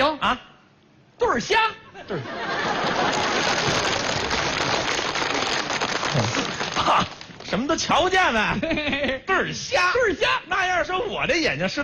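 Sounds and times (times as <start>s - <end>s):
speech: 0.2s - 0.5s, 1.2s - 4.0s, 6.2s - 11.8s
laughter: 2.0s - 7.3s, 8.5s - 9.3s
audience applause: 2.6s - 7.5s.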